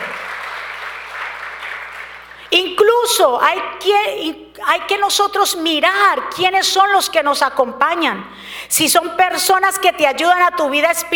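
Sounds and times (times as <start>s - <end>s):
audience applause: 0.0s - 2.5s
speech: 3.0s - 11.1s.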